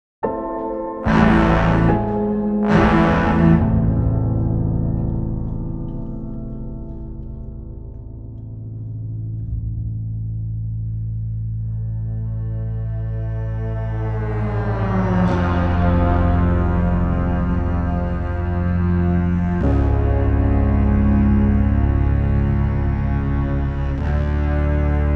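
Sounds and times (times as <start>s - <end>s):
classical cinematic underscore: 0.2s - 25.1s.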